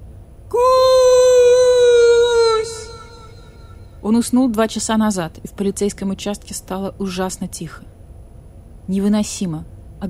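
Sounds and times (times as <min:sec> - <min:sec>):
wolf howling, high and mournful: 0:00.5 - 0:03.8
speech: 0:04.0 - 0:07.9, 0:08.9 - 0:10.0.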